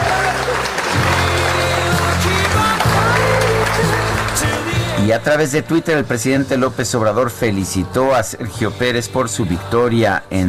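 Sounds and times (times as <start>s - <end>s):
applause: 0.0s - 5.3s
speech: 5.0s - 10.4s.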